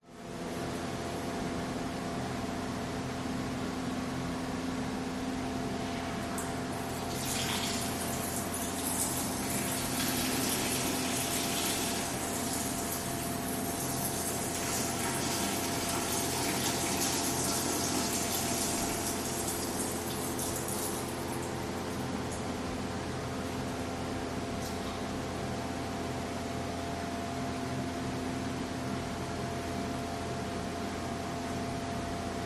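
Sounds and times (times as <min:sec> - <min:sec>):
public toilet fan: 0:00.0 - 0:32.4
toilet flushing in next cubicle: 0:06.8 - 0:21.5.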